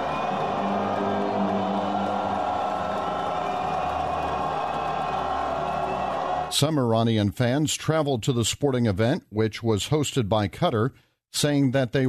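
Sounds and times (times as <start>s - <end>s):
stadium fans booing a national anthem: 0.0s - 6.5s
speech: 6.5s - 12.0s.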